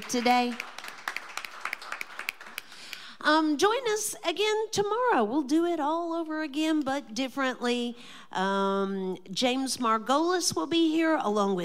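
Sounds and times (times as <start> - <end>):
speech: 0.0 - 0.7, 3.2 - 11.6
scattered handclaps from a small audience at a live bluegrass show: 0.0 - 3.1.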